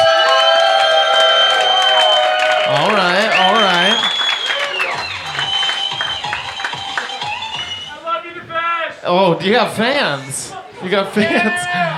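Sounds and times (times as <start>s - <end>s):
audience applause and cheering: 0.0s - 7.9s
speech: 9.4s - 11.9s.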